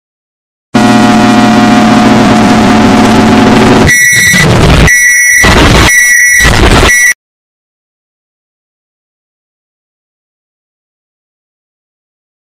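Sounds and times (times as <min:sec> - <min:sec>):
distorted microwave oven sound: 0:00.8 - 0:07.2.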